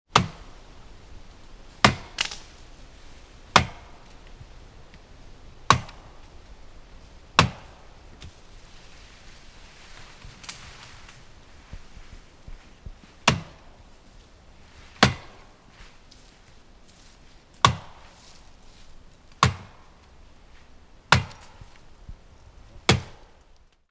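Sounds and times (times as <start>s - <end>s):
axe chopping and trimming a tree: 0.1s - 0.6s, 1.8s - 2.5s, 3.5s - 4.2s, 5.7s - 6.2s, 7.4s - 8.4s, 13.2s - 13.7s, 14.9s - 15.5s, 17.6s - 18.2s, 19.3s - 19.9s, 21.1s - 21.8s, 22.9s - 23.4s.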